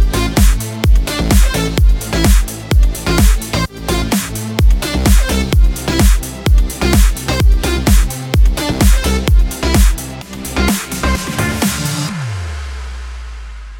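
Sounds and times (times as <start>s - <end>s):
electro music bed in A minor at 128 BPM: 0.0s - 13.7s.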